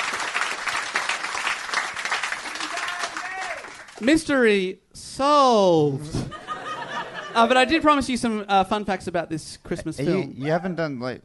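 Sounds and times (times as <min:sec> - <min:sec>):
audience applause: 0:00.0 - 0:04.1
speech: 0:04.0 - 0:06.2, 0:07.4 - 0:11.2
laughter: 0:06.0 - 0:07.9.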